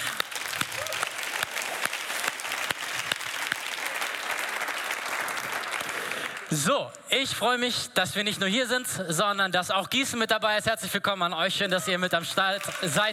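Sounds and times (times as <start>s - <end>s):
audience applause: 0.0s - 6.6s, 12.5s - 13.1s
speech: 6.5s - 13.1s.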